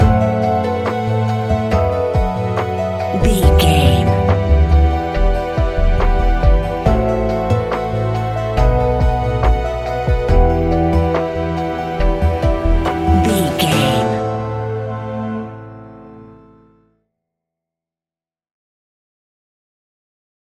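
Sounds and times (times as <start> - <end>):
relaxed chilling spectral lullaby music: 0.0 - 16.3.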